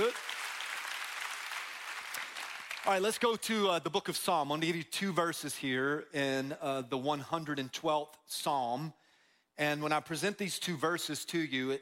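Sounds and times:
audience clapping: 0.0s - 3.4s
speech: 2.9s - 9.0s, 9.6s - 11.8s.

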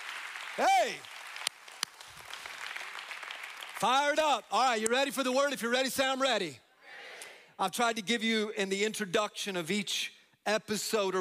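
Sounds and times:
two sharp loud claps: 0.0s - 4.1s
crowd applauding: 0.0s - 4.2s
speech: 0.6s - 1.2s, 3.8s - 6.6s, 7.6s - 11.1s.

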